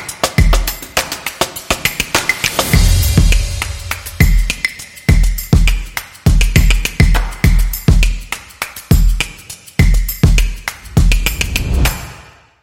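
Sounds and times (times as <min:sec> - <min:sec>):
calm drum beat: 0:00.0 - 0:12.2.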